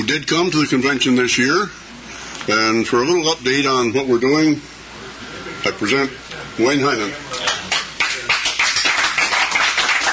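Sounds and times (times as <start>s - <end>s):
speech: 0.1s - 4.7s, 5.6s - 7.4s
audience applause: 7.4s - 10.1s.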